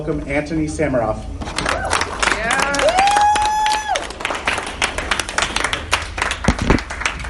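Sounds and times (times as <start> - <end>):
speech: 0.0 - 1.6
audience applause welcoming a speaker: 1.5 - 7.2.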